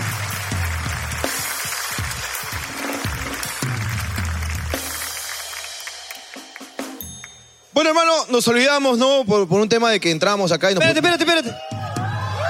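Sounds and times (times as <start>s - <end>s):
crowd applause: 0.0s - 6.9s
speech: 7.8s - 11.7s.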